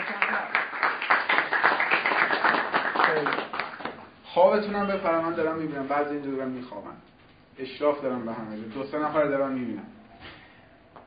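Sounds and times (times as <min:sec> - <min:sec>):
students clapping: 0:00.0 - 0:04.1
speech: 0:04.4 - 0:10.0.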